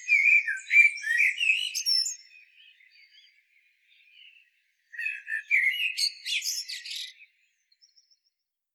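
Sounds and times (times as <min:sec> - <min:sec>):
common blackbird Turdus merula singing: 0:00.0 - 0:03.3, 0:05.0 - 0:07.3.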